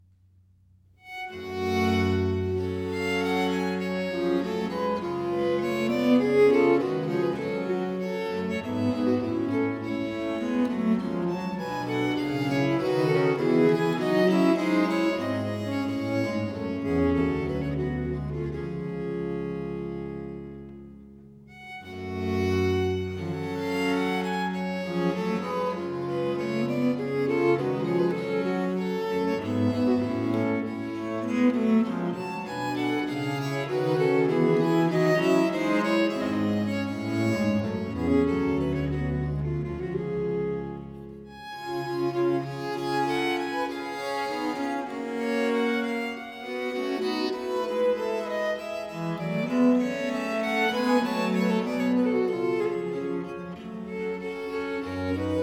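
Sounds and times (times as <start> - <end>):
English music for viols in G minor: 1.0 - 55.4.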